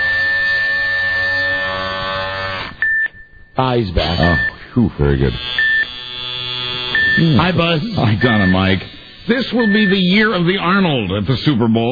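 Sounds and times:
electric razor buzzing: 0.0s - 2.8s, 5.0s - 10.8s
speech: 3.6s - 5.6s, 7.2s - 11.9s.

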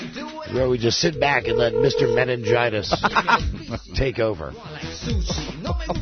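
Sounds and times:
speech: 0.6s - 5.9s
telephone number being dialed: 1.2s - 2.6s.

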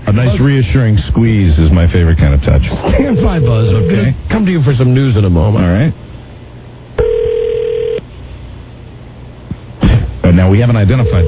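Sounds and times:
low hum: 0.0s - 11.2s
speech: 0.1s - 6.1s, 10.4s - 11.2s
telephone ringing: 3.0s - 4.1s, 7.0s - 8.0s, 10.9s - 11.2s.

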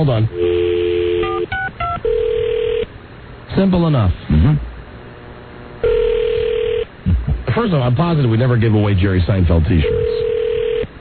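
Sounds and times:
speech: 0.0s - 0.6s, 3.6s - 4.7s, 7.6s - 10.0s
telephone dial tone: 0.4s - 2.9s, 5.8s - 6.8s, 9.9s - 10.9s.

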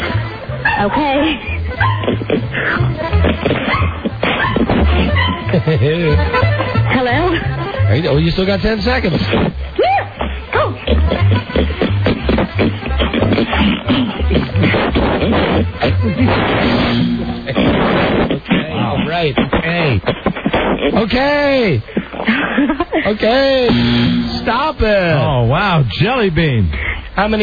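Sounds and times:
laughter: 0.0s - 18.9s, 21.8s - 23.8s
speech: 0.8s - 3.9s, 5.5s - 11.8s, 13.4s - 27.4s
pig snorting: 1.9s - 5.7s, 10.2s - 19.0s.

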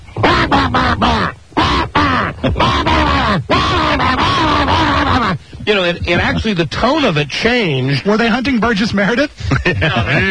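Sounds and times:
voice imitating squawking geese: 0.0s - 5.5s
laughter: 0.2s - 6.6s, 9.4s - 10.2s
speech: 0.5s - 1.4s, 5.7s - 10.2s.

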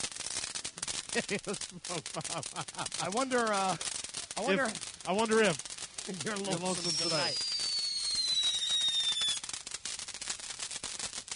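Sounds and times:
fireworks crackling pops: 0.0s - 11.3s
laughter: 1.1s - 3.3s
speech: 1.2s - 7.5s
firework whistle: 5.8s - 11.3s.

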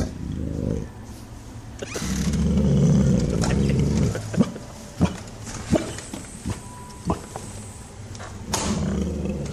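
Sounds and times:
dog growling: 0.0s - 0.9s, 1.8s - 6.0s, 8.6s - 9.5s.

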